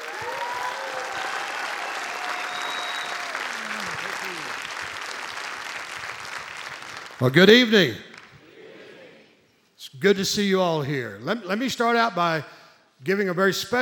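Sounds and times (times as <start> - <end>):
people whooping and cheering: 0.0 - 4.8
audience clapping at an evening event: 0.0 - 8.4
speech: 7.2 - 8.1, 10.0 - 13.7.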